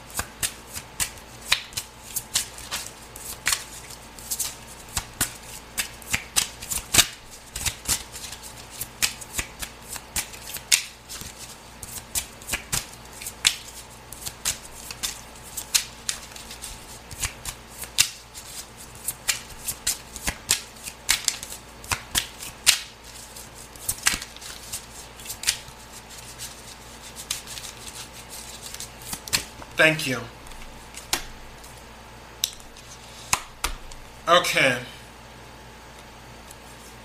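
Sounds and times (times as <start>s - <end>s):
playing cards shuffled for the card game Timelines of Scorpio: 0.2s - 29.5s
speech: 29.8s - 30.4s, 34.3s - 34.9s.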